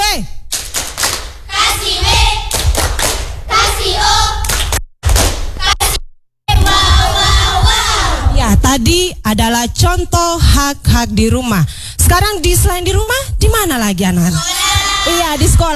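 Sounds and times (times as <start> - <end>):
children clapping hands together: 0.5 - 3.4, 4.0 - 5.5
children chanting: 1.5 - 2.5, 3.5 - 4.5, 6.5 - 8.3, 14.4 - 15.1
speech: 8.8 - 15.7.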